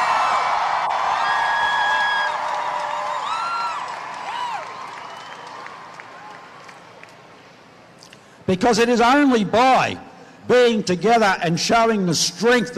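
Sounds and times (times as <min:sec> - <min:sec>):
rising whoops: 0:00.0 - 0:06.5
large crowd cheering and applauding: 0:00.0 - 0:07.2
high whistles: 0:04.9 - 0:05.7
speech: 0:08.5 - 0:12.7.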